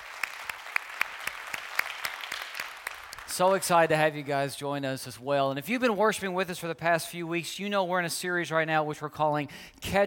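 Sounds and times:
church congregation clapping: 0.0s - 4.5s
speech: 3.3s - 10.0s.

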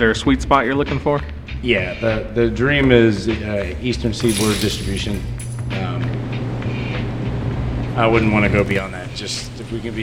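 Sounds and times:
speech: 0.0s - 5.9s, 8.0s - 10.0s
air conditioning switching on: 3.6s - 10.0s.

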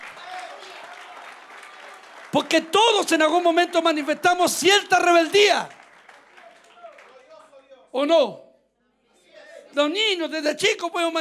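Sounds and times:
applause: 0.0s - 7.9s
speech: 2.3s - 5.8s, 7.9s - 8.4s, 9.8s - 11.1s.

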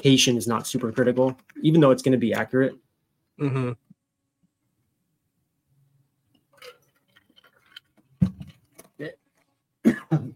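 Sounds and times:
speech: 0.0s - 2.8s, 3.4s - 3.8s, 9.0s - 9.2s, 10.1s - 10.3s
harsh coughing: 9.8s - 10.3s.

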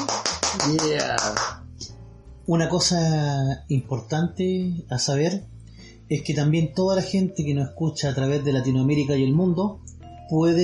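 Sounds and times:
applause: 0.0s - 1.6s
speech: 0.6s - 1.6s, 2.5s - 10.6s.

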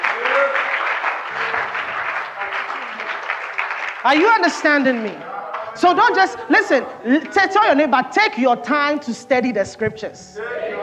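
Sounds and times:
audience clapping: 0.0s - 7.4s
speech: 4.0s - 10.7s.

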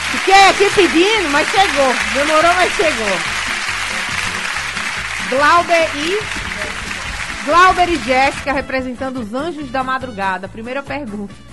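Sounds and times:
applause: 0.0s - 8.7s
speech: 0.2s - 3.3s, 5.3s - 6.4s, 7.4s - 11.5s.

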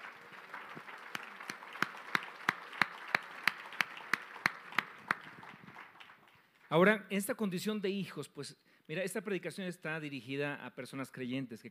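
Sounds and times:
loud audience applause: 0.0s - 6.9s
speech: 6.7s - 11.6s.

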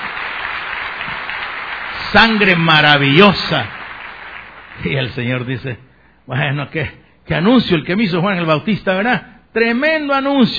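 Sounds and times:
applause: 0.0s - 5.5s
speech: 2.1s - 3.8s, 4.8s - 10.5s.

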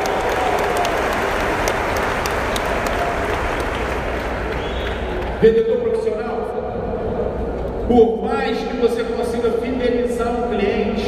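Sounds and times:
audience applause: 0.0s - 5.4s
speech: 5.4s - 6.9s, 7.9s - 11.0s.

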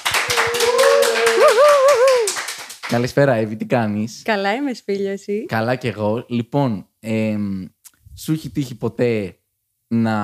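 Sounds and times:
applause: 0.0s - 3.2s
speech: 2.9s - 10.2s.

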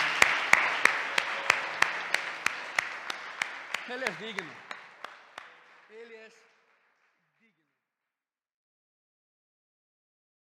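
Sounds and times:
crowd applauding: 0.0s - 7.7s
sharp evenly spaced claps: 0.0s - 7.8s
speech: 3.9s - 4.6s.

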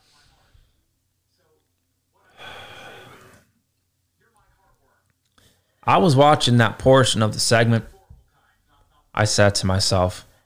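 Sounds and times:
faint breathing: 0.0s - 0.9s, 2.2s - 3.6s, 5.3s - 5.9s
deep breath: 2.2s - 3.5s, 5.3s - 5.8s
speech: 5.8s - 7.9s, 9.2s - 10.3s.

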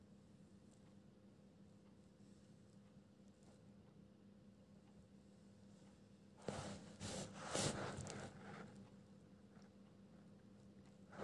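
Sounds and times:
soft steady low hum: 0.0s - 11.2s
bright papery rustle and pencil scratching: 6.4s - 8.8s.

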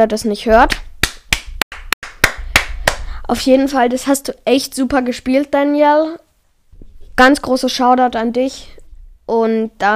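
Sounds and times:
speech: 0.0s - 0.9s, 3.3s - 6.2s, 7.2s - 9.9s
hand claps: 0.7s - 3.1s.

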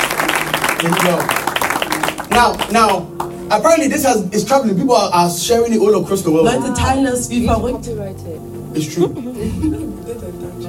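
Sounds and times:
crowd clapping: 0.0s - 3.6s
speech: 0.8s - 1.4s, 2.4s - 10.6s.

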